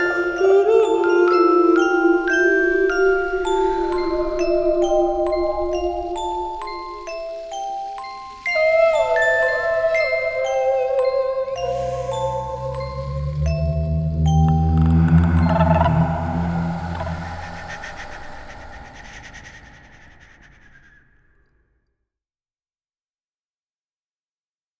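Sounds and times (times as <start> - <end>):
melody: 0.0 - 18.1.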